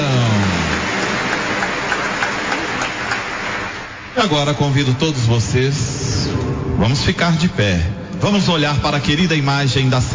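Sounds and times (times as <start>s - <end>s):
applause: 0.0s - 4.2s
speech: 4.2s - 6.2s, 6.8s - 10.1s.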